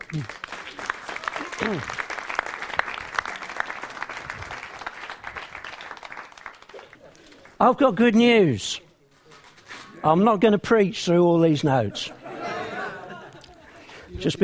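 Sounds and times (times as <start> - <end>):
audience applause welcoming a speaker at a church gathering: 0.0 - 7.6
speech: 0.1 - 0.4, 1.6 - 2.1, 7.6 - 8.8, 10.0 - 12.2, 14.2 - 14.4
laughter: 11.8 - 14.0.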